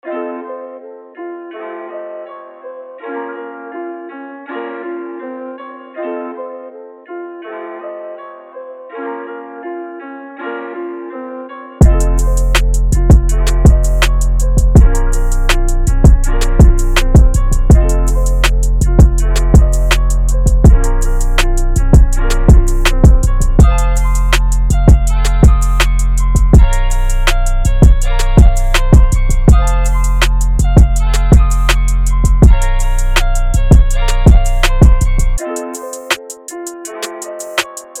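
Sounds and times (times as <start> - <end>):
drum kit: 11.8 - 37.9.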